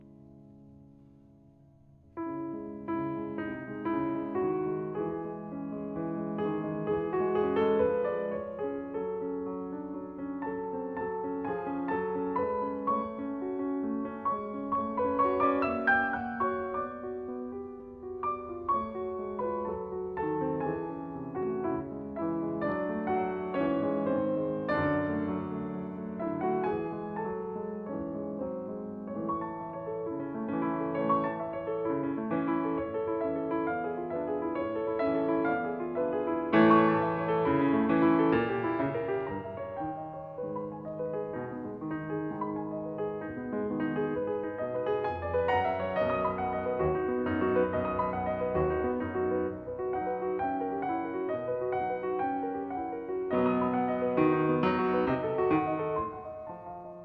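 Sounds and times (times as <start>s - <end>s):
Piano sonata in B-flat major: 0.0s - 57.0s.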